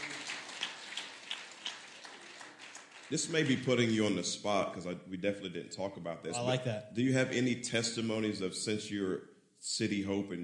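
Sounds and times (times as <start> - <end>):
soft steady applause from a group: 0.0 - 4.2
speech: 3.1 - 10.4.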